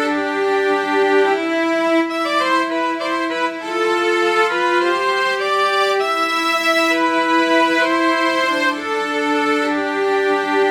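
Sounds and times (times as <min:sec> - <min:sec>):
cello section: 0:00.0 - 0:10.6.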